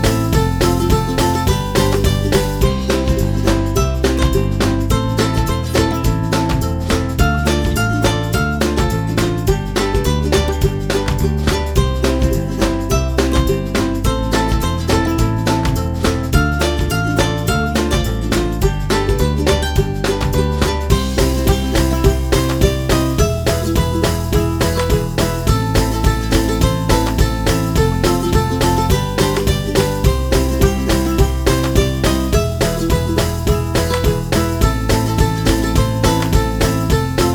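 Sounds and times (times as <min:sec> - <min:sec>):
background ukulele playing: 0:00.0 - 0:37.3.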